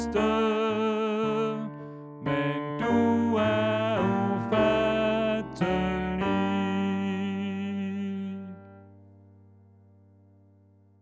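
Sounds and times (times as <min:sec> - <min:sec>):
tenor singing: 0:00.0 - 0:08.8.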